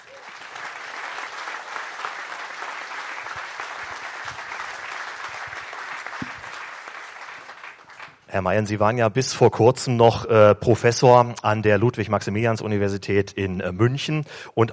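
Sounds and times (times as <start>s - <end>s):
audience applause: 0.0s - 8.2s
speech: 8.3s - 14.7s.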